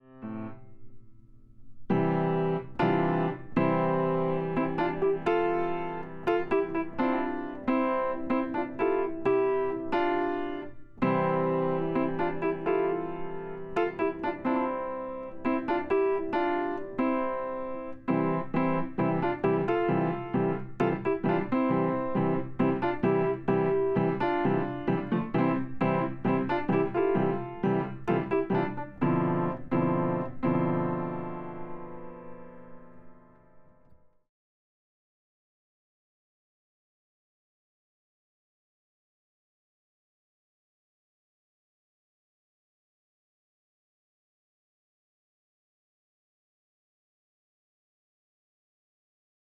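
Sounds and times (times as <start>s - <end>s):
piano: 0.0s - 34.3s.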